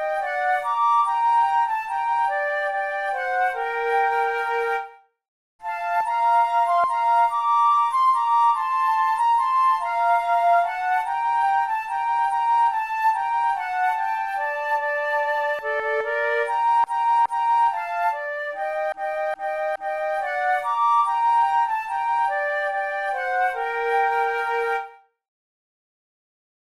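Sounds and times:
flute duet: 0.0 - 25.1.

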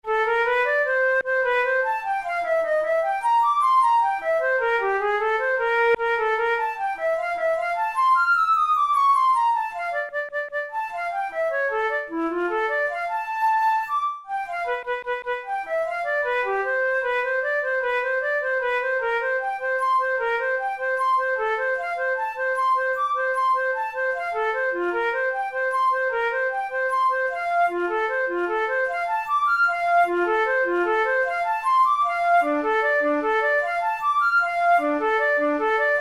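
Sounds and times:
flute tunes in F major: 0.0 - 35.9.

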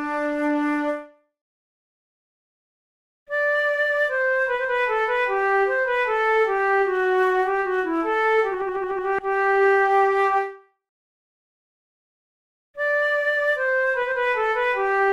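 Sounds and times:
flute: 0.0 - 1.2, 3.3 - 10.7, 12.8 - 15.1.

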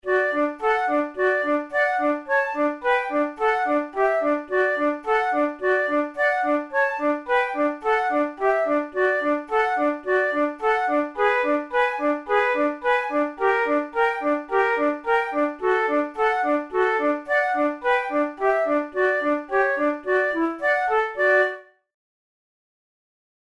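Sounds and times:
flute method exercise: 0.0 - 21.8.

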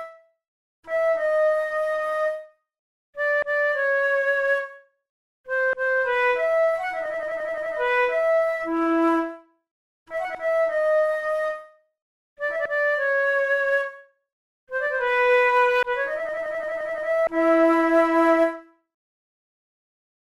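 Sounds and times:
two flutes playing a prelude: 0.9 - 2.5, 3.2 - 4.8, 5.5 - 9.5, 10.1 - 11.8, 12.4 - 14.0, 14.7 - 18.7.

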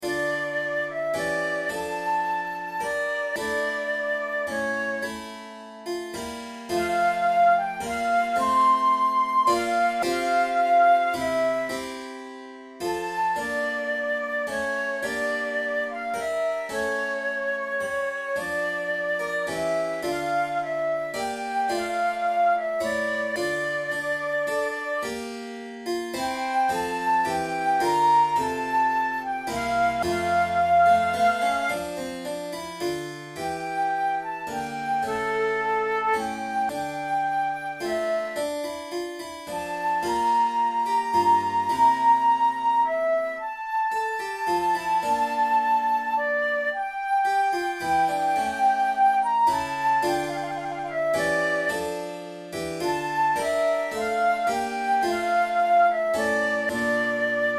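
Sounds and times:
recorder sonata siciliana in F major played on flute: 0.0 - 57.5.

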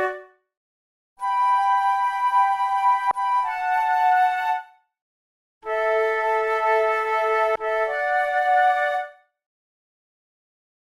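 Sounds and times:
flute duet: 0.0 - 0.3, 1.2 - 4.8, 5.6 - 9.2.

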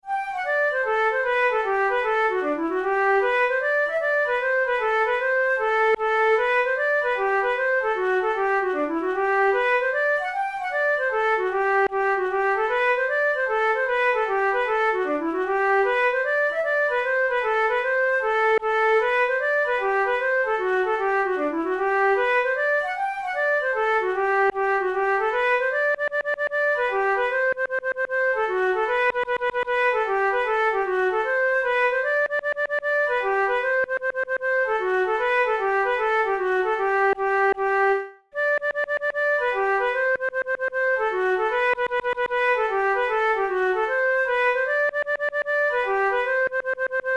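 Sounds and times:
hornpipe tune: 0.0 - 47.1.

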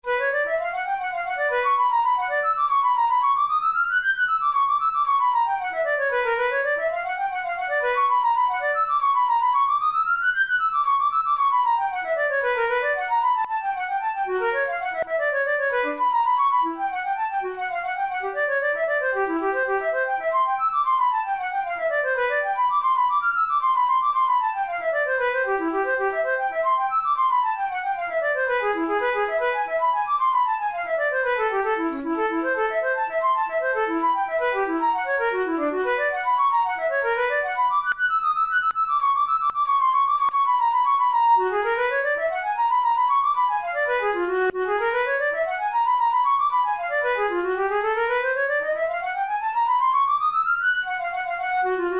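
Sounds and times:
flute playing etudes: 0.0 - 51.9.

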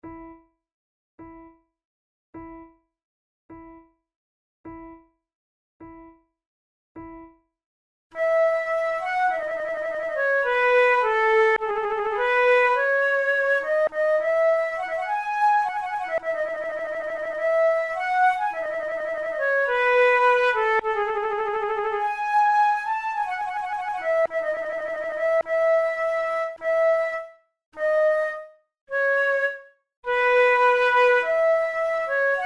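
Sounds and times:
two flutes playing an air: 8.2 - 32.4.

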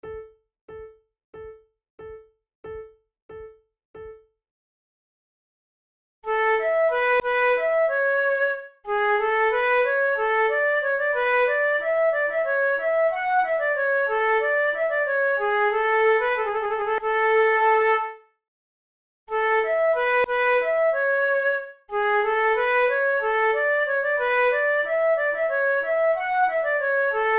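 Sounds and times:
allemande played on flute: 6.3 - 18.2, 19.3 - 27.3.

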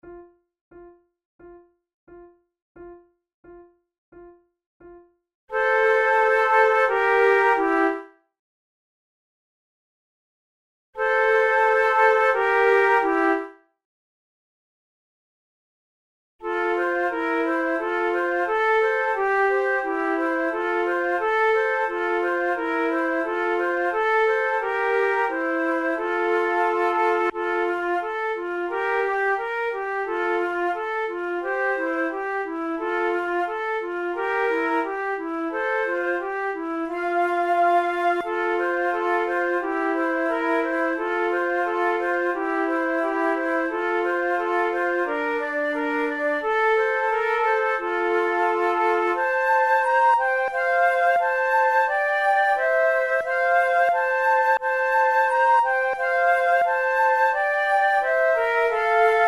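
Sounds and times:
musical trio: 5.6 - 8.0, 11.0 - 13.5, 16.5 - 59.2.

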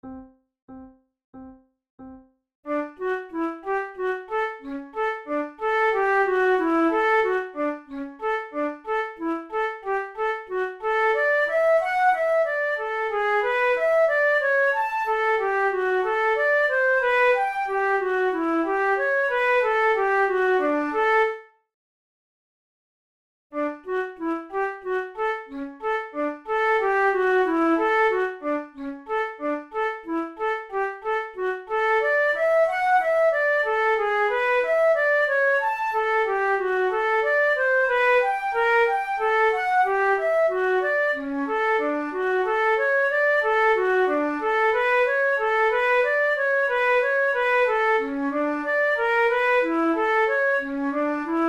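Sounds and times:
flute: 2.7 - 21.5, 23.6 - 51.4.

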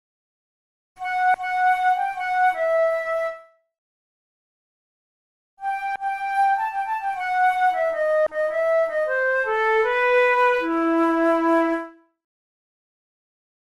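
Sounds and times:
two flutes playing: 1.0 - 3.6, 5.6 - 12.0.

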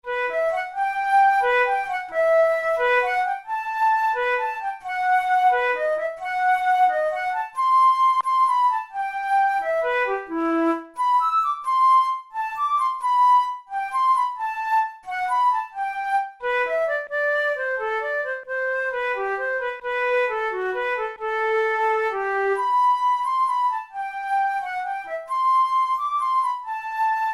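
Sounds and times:
studies for the Boehm flute: 0.0 - 27.3.

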